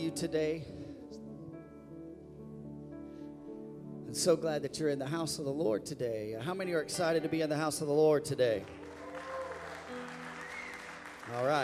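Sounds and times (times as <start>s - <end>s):
speech: 0.0s - 0.8s, 4.1s - 8.9s, 11.3s - 11.6s
audience cheering and applauding: 8.6s - 11.6s.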